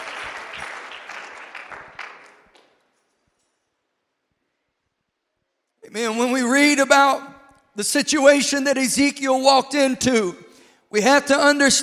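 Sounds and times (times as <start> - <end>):
hand clapping: 0.0 - 3.0
speech: 5.9 - 11.8.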